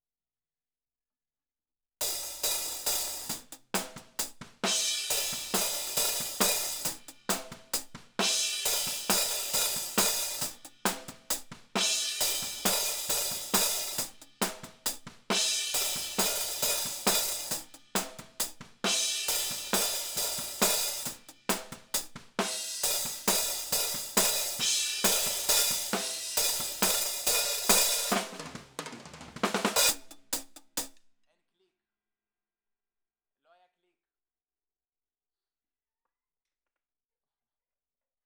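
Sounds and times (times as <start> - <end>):
hi-hat: 2.2 - 28.5, 29.5 - 31.0.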